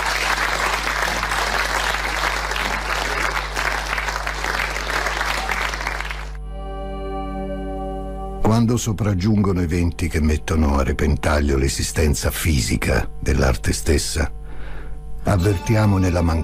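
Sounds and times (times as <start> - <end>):
large audience applause: 0.0 - 6.4
low steady hum: 0.0 - 16.4
speech: 8.5 - 14.4, 15.2 - 16.4.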